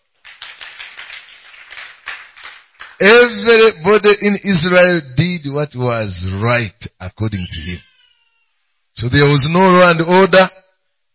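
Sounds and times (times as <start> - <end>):
audience clapping hands: 0.0 - 3.4
speech: 3.0 - 7.9, 9.0 - 10.6.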